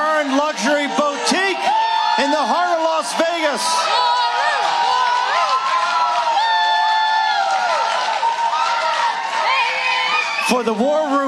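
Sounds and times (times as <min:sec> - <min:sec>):
live audience cheering and applauding: 0:00.0 - 0:11.2
speech: 0:03.5 - 0:04.0, 0:10.6 - 0:11.2.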